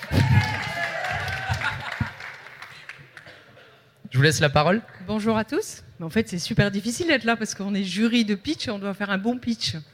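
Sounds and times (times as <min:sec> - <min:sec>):
audience applause for the jury at a startup pitch competition: 0:00.0 - 0:03.4
speech: 0:04.2 - 0:09.9.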